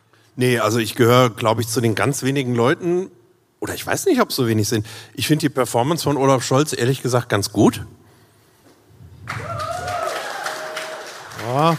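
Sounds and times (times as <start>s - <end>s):
speech: 0.4s - 8.0s, 11.5s - 11.7s
mother clapping: 9.3s - 11.7s.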